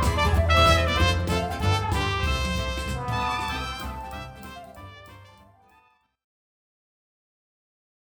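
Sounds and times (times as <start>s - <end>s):
dixie music: 0.0s - 5.8s.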